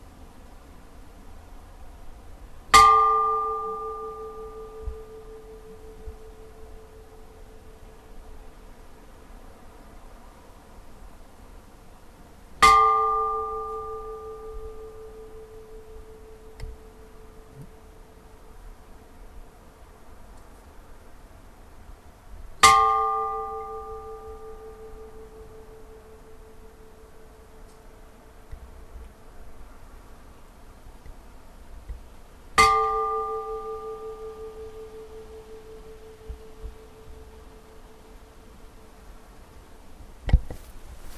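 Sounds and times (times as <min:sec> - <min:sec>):
church bells of Hvammskirkja in Hvammssveit tolling for a funeral: 0:02.8 - 0:07.4, 0:12.6 - 0:17.6, 0:22.6 - 0:26.9, 0:32.6 - 0:38.2.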